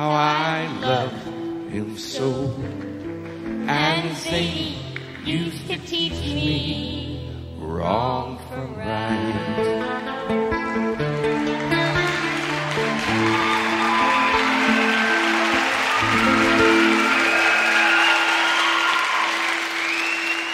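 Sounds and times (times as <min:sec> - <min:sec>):
speech: 0:00.0 - 0:02.9, 0:03.6 - 0:10.8
audience applause: 0:11.0 - 0:20.5.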